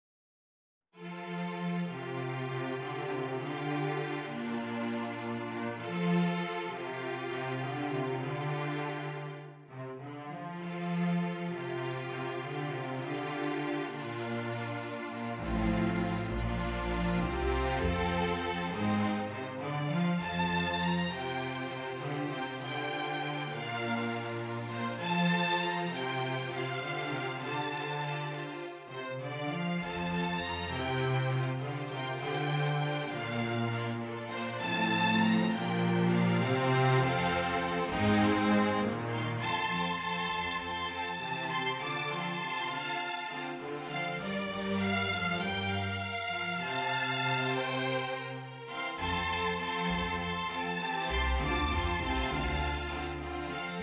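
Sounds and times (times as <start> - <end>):
string orchestra: 1.0 - 53.8.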